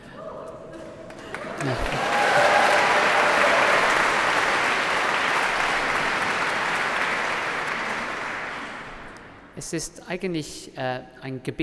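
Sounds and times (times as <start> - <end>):
large audience applause: 1.1 - 9.4
speech: 1.6 - 2.1, 9.6 - 11.6.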